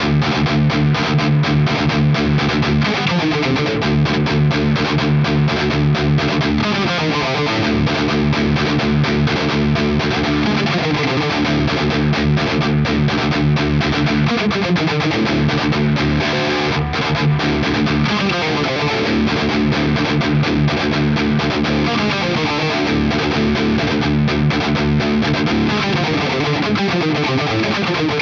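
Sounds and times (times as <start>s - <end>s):
metal guitar through Nux MG-30 Hiwatt amp model: 0.0s - 28.2s.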